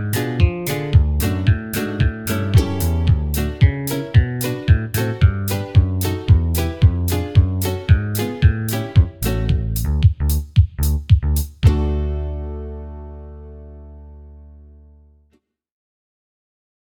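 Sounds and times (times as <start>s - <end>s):
fast banjo backing track: 0.0s - 13.3s.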